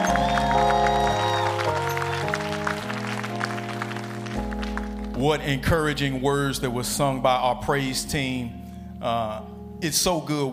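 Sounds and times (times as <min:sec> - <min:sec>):
audience applause: 0:00.0 - 0:05.2
speech: 0:05.2 - 0:10.5.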